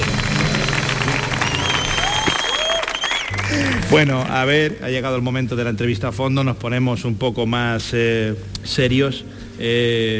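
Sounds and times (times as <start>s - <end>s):
loud applause: 0.0s - 4.7s
speech: 3.9s - 10.1s.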